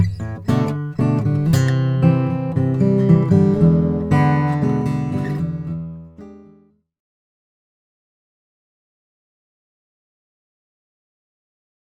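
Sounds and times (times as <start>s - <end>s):
Froggy Bottom H12 Limited Brazilian rosewood acoustic guitar: 0.0s - 6.8s.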